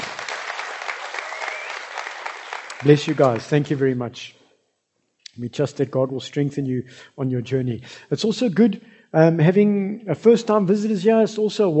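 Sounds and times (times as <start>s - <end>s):
church congregation applauding newly baptized people: 0.0s - 4.0s
speech: 2.8s - 4.4s, 5.4s - 11.7s.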